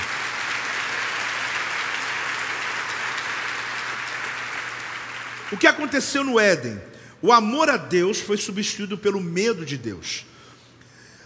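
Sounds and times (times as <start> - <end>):
audience applauding: 0.0 - 6.2
speech: 5.5 - 10.3.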